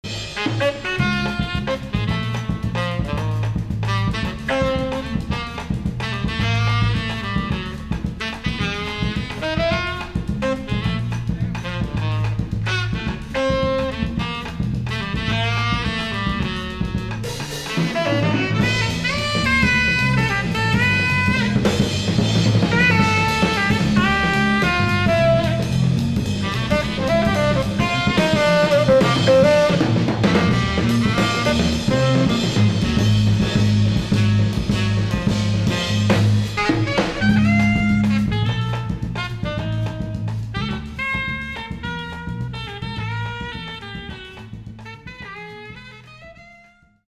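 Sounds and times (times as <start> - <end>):
bossa nova music: 0.0 - 47.0.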